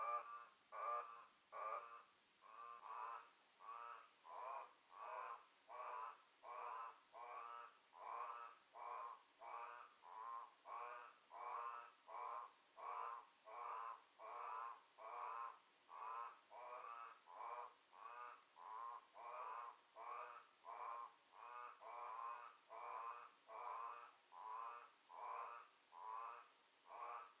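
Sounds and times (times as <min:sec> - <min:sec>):
frogs croaking: 0:00.0 - 0:27.3.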